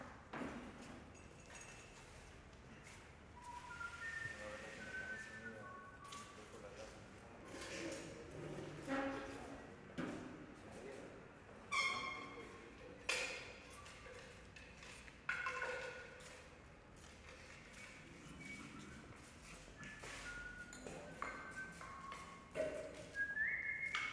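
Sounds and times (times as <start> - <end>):
men working in a scenery workshop: 0.2 - 24.1
man whistling in a scenery workshop: 3.4 - 6.4, 18.2 - 24.1.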